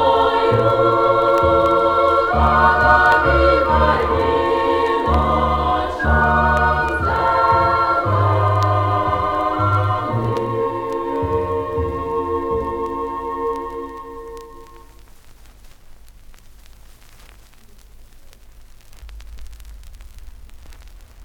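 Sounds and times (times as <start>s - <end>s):
Ukrainian folk choir singing: 0.0s - 15.0s.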